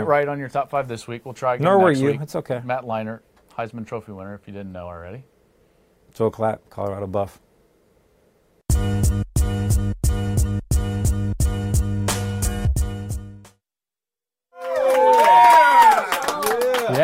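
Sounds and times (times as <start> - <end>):
speech: 0.0 - 5.3, 6.1 - 7.4
punchy rhythmic music hits: 8.7 - 13.6
staff posing as studio audience cheering and whooping: 14.6 - 17.0.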